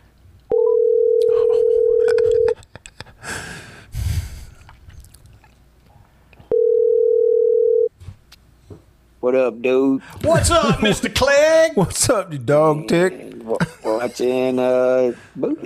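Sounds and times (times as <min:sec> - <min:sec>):
telephone dial tone of outgoing call: 0:00.5 - 0:02.5, 0:06.5 - 0:07.9
rustling noise: 0:08.0 - 0:08.8
speech: 0:09.3 - 0:15.6.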